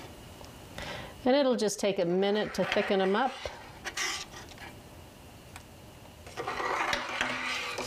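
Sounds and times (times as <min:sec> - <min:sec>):
speech: 0:01.2 - 0:03.5
stirring berries in a pot: 0:02.0 - 0:04.4, 0:06.2 - 0:07.8.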